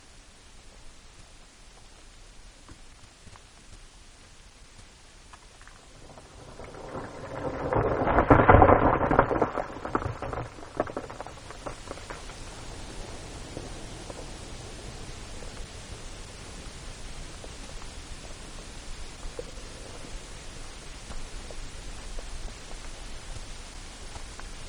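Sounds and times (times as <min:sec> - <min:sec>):
short midground rock slide: 0:05.4 - 0:15.8.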